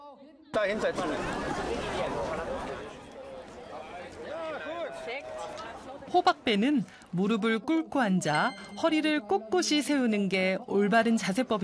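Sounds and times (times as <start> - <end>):
spectators chattering before a race: 0.2 - 11.6
speech: 0.5 - 2.8, 5.2 - 11.6.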